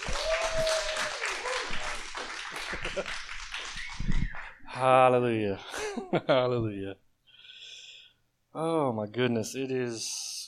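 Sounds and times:
church congregation clapping to welcome a speaker: 0.0s - 4.6s
people cheering: 0.0s - 4.6s
laughter: 2.5s - 3.4s
speech: 3.0s - 3.2s, 4.8s - 7.0s, 8.6s - 10.3s.

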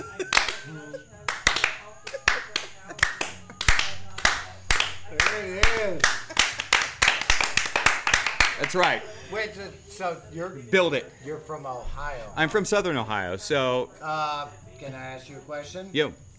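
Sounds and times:
people talking and laughing: 0.0s - 15.8s
single pair of hands slow clapping: 0.2s - 9.1s
speech: 8.6s - 16.2s.

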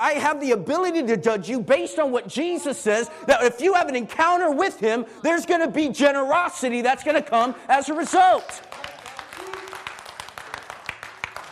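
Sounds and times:
speech: 0.0s - 8.8s
audience clapping: 7.9s - 11.5s.

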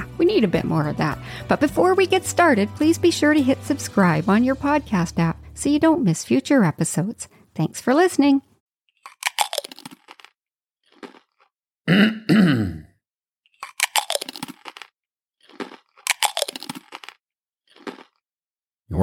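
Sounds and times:
speech: 0.2s - 8.5s, 11.9s - 12.8s
noisy chewing: 9.0s - 11.5s, 13.5s - 18.2s.

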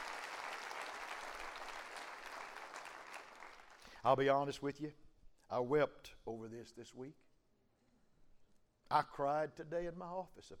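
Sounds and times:
audience clapping hands: 0.0s - 3.9s
speech: 4.0s - 7.3s, 8.9s - 10.5s.

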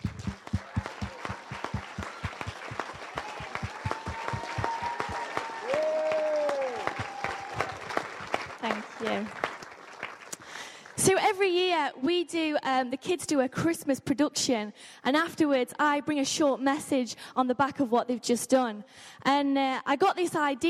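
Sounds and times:
round of applause: 0.0s - 11.0s
speech: 9.0s - 9.4s, 11.3s - 20.6s.

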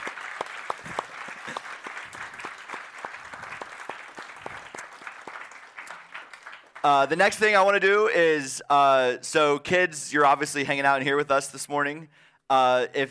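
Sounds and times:
audience applause: 0.0s - 7.2s
speech: 6.8s - 13.1s.

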